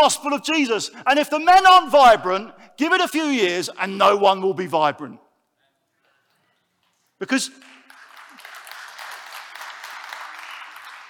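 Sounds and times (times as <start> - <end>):
speech: 0.0 - 5.2, 7.2 - 7.7
audience clapping at a church gathering: 7.4 - 11.0.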